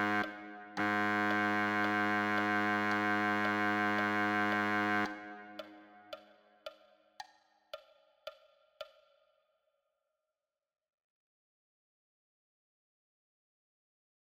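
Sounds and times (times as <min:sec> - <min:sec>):
baritone saxophone: 0:00.0 - 0:05.9.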